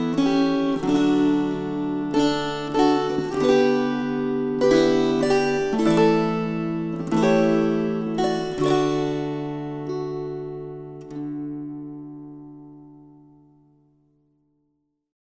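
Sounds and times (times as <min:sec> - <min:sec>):
string choir: 0:00.0 - 0:11.4.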